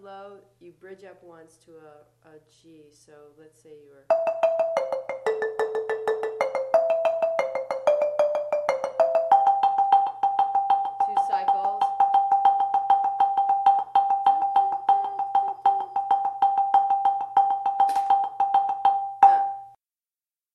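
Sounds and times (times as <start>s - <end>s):
low rolling marimba lead: 4.1s - 19.7s.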